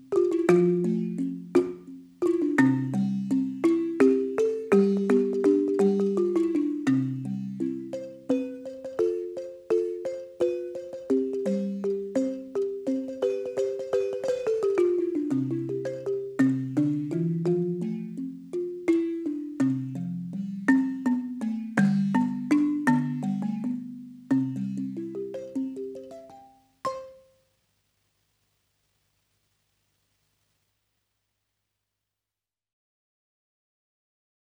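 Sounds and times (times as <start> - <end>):
balafon interlude: 0.0 - 27.3.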